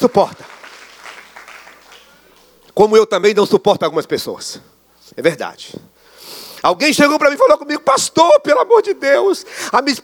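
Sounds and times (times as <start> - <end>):
speech: 0.0 - 0.4, 2.8 - 5.9, 6.6 - 10.0
audience applauding: 0.0 - 2.6.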